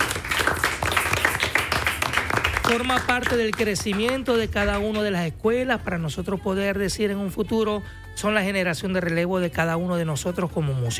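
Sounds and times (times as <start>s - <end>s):
audience applause at a bagpipe-school event: 0.0s - 5.3s
speech: 2.7s - 10.9s.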